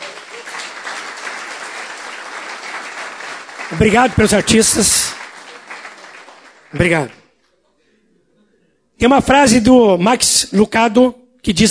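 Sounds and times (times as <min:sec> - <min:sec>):
applause: 0:00.0 - 0:07.3
speech: 0:03.7 - 0:05.2, 0:06.7 - 0:07.2, 0:09.0 - 0:11.7.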